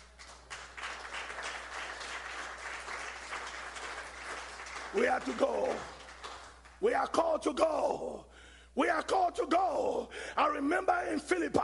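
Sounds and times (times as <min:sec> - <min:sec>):
crowd clapping: 0:00.0 - 0:06.8
speech: 0:04.9 - 0:06.0, 0:06.8 - 0:11.6.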